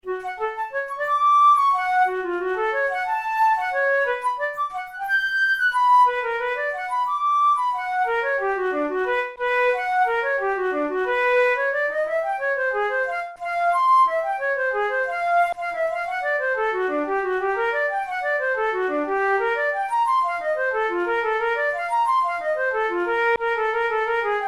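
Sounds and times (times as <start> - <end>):
flute playing a study in F sharp minor: 0.0 - 24.4.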